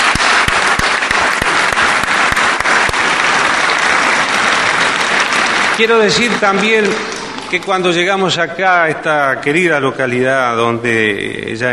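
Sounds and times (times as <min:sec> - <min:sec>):
crowd clapping: 0:00.0 - 0:08.6
speech: 0:05.8 - 0:11.7.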